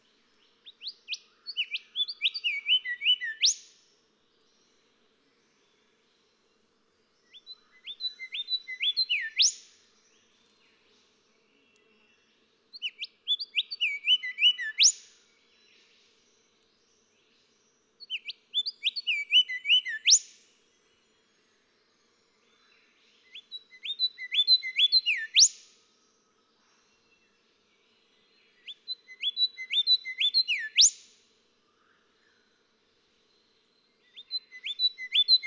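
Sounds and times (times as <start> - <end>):
golden whistler song of rising whistles and upswept crack: 0.7 - 3.8, 7.3 - 9.8, 12.8 - 15.2, 18.0 - 20.4, 23.2 - 25.7, 28.5 - 31.1, 34.0 - 35.4.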